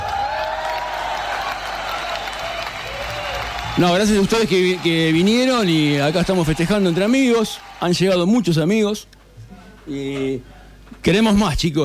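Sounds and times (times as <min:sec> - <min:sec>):
audience applause: 0:00.0 - 0:08.7
speech: 0:03.8 - 0:09.2, 0:09.9 - 0:11.8.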